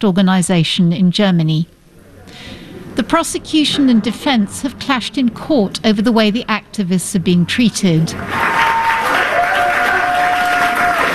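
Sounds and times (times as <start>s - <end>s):
speech: 0.0s - 8.6s
supporters cheering, shouting and clapping in courtroom: 8.1s - 11.1s.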